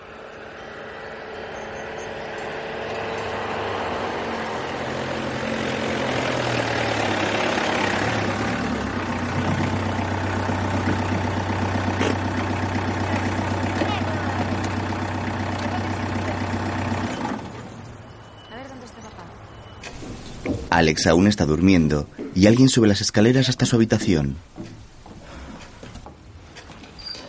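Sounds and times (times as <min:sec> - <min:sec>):
car driving along a road and stopping in a house garden: 0:00.0 - 0:20.8
speech: 0:20.8 - 0:24.6.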